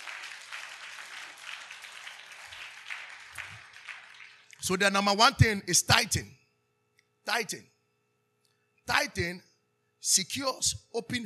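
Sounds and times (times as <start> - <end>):
audience clapping: 0.0 - 4.8
speech: 4.6 - 6.4, 7.3 - 7.7, 8.9 - 11.2.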